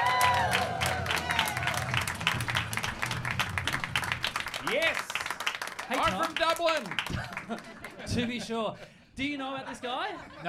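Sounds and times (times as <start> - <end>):
studio audience clapping to greet a guest: 0.0 - 8.1
speech: 4.7 - 5.1, 5.9 - 10.4.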